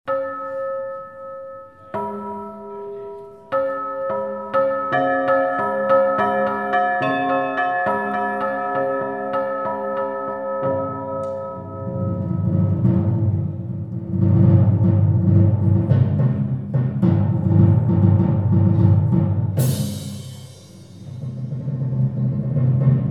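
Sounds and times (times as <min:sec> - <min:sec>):
piano and strings: 0:00.1 - 0:23.0.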